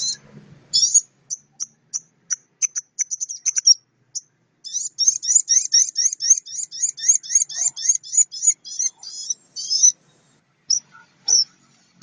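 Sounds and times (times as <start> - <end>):
Oriental magpie-robin singing trills, repeated notes, whistles and chips: 0.0 - 12.0.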